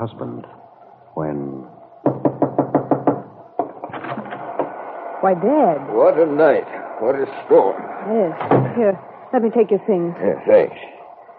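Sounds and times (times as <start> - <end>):
speech: 0.0 - 0.6, 1.2 - 2.3, 5.2 - 10.9
fingers drumming on a window pane: 2.0 - 4.8.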